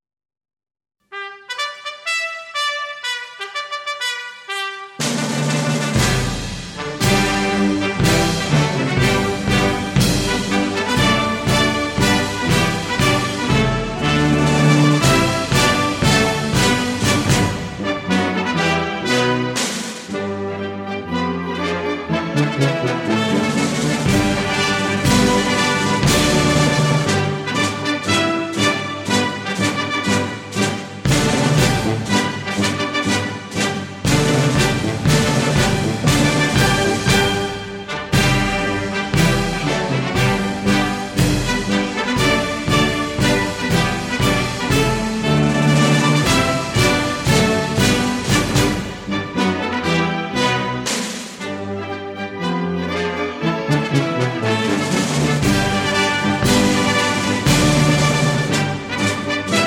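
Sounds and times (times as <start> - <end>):
national anthem: 1.1 - 59.6.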